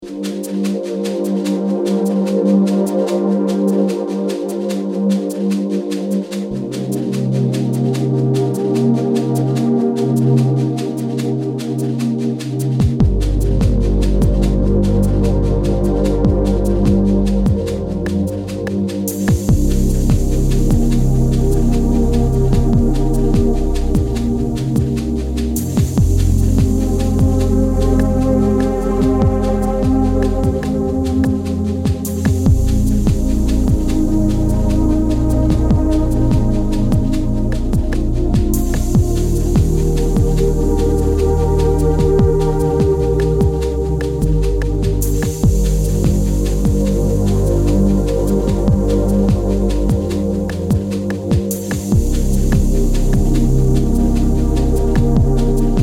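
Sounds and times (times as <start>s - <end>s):
chillout lounge music: 0.0s - 55.8s.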